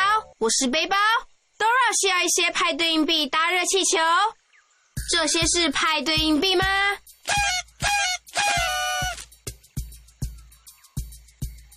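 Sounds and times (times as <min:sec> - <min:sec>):
speech: 0:00.4 - 0:01.3, 0:01.9 - 0:04.4, 0:05.0 - 0:07.5
BB toy whistle being blown: 0:07.2 - 0:09.3.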